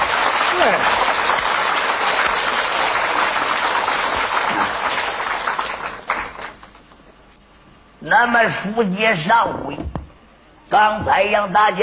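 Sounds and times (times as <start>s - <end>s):
audience applause: 0.0s - 6.8s
speech: 0.6s - 1.0s, 8.1s - 9.8s, 10.7s - 11.8s.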